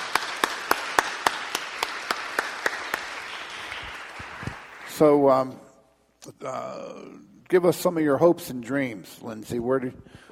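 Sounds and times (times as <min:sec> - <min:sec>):
audience applause: 0:00.0 - 0:05.2
speech: 0:05.0 - 0:05.6, 0:06.2 - 0:10.3.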